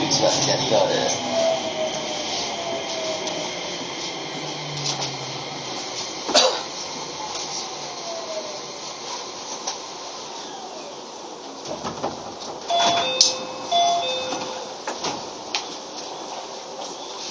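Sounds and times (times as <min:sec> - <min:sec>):
Keio 5000 series train running: 0:00.0 - 0:16.8
short tonal beeps: 0:12.7 - 0:14.8.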